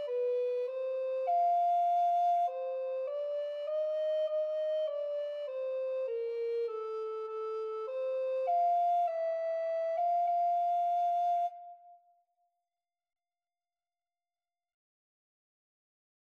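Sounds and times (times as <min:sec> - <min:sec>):
alto recorder duet: 0:00.0 - 0:12.0.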